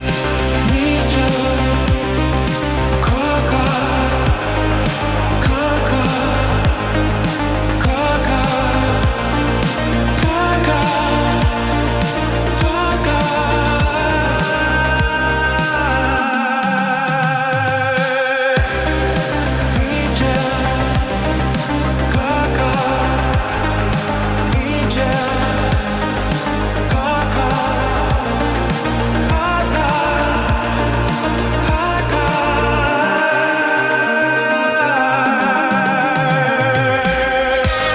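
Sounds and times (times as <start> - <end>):
electronica music: 0.0 - 37.9.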